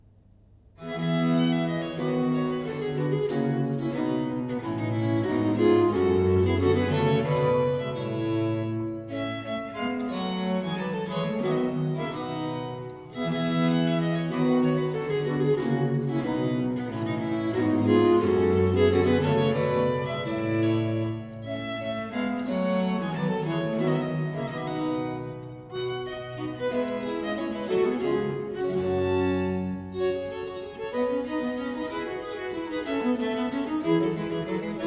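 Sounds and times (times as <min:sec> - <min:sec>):
English viol consort music: 0:00.8 - 0:34.8.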